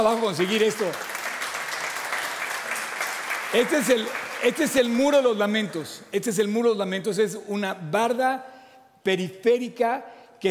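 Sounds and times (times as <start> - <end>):
speech: 0.0 - 1.1, 3.5 - 10.4
audience applause: 0.0 - 5.0.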